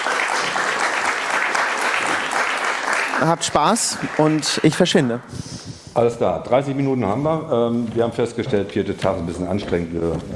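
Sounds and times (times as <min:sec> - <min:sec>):
audience applause: 0:00.0 - 0:06.0
speech: 0:03.2 - 0:10.3.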